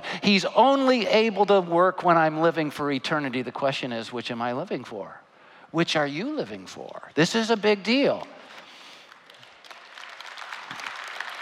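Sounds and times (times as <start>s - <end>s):
speech: 0.1s - 8.4s
hand clapping: 8.2s - 11.3s.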